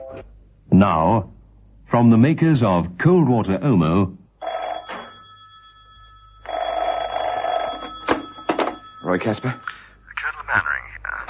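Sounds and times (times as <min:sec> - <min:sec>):
speech: 0:00.1 - 0:04.2, 0:09.2 - 0:09.7
old-fashioned telephone bell ringing: 0:04.4 - 0:10.0.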